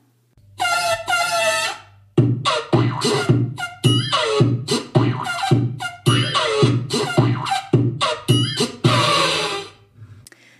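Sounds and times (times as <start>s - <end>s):
cartoon little elephant trumpeting: 0.6s - 9.8s.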